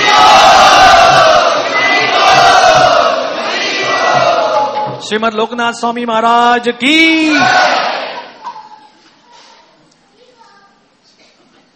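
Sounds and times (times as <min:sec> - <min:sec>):
temple congregation at Shri Shri Radha Gopinath Mandir chanting a welcome: 0:00.0 - 0:05.0, 0:07.0 - 0:08.4
speech: 0:05.1 - 0:07.8.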